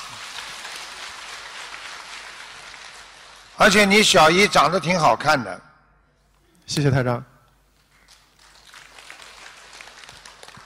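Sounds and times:
audience applause: 0.0s - 3.6s, 8.0s - 10.6s
speech: 3.6s - 5.7s, 6.7s - 7.3s.

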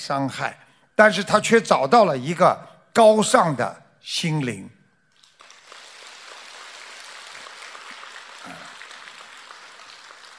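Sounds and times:
speech: 0.0s - 4.8s
audience applause: 5.2s - 10.3s.

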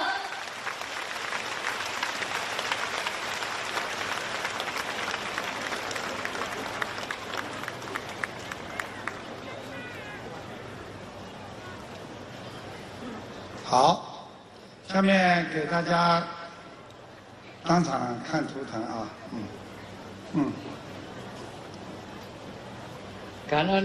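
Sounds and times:
large audience applause: 0.1s - 10.4s
speech: 15.0s - 16.3s, 17.7s - 19.6s, 23.5s - 23.8s.

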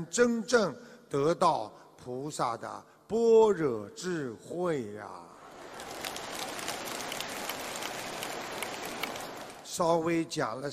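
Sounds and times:
speech: 0.0s - 5.3s, 9.8s - 10.7s
sparse crowd clapping: 5.5s - 9.7s.

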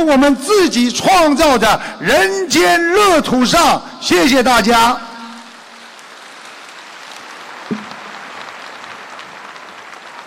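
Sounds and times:
speech: 0.0s - 5.1s
audience applause: 5.9s - 10.2s.

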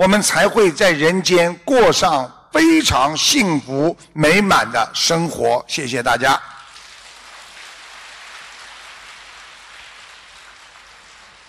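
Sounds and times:
speech: 0.0s - 6.6s
crowd clapping: 6.6s - 11.4s.

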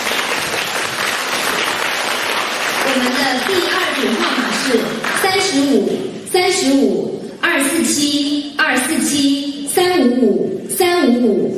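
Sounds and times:
crowd applauding: 0.0s - 5.3s
speech: 3.0s - 11.5s.

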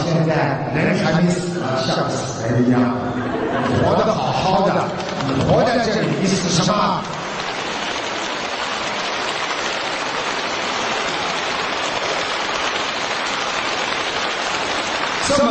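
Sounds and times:
speech: 0.8s - 7.2s
laughter: 2.8s - 6.7s
audience applause: 4.4s - 15.5s.

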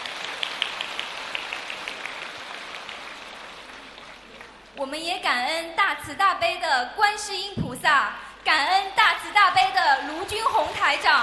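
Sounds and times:
audience applause: 0.0s - 4.8s, 9.6s - 11.2s
speech: 4.8s - 11.2s.

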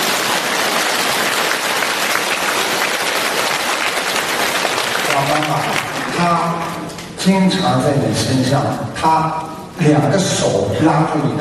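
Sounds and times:
applause: 0.0s - 7.1s
speech: 5.2s - 11.3s.

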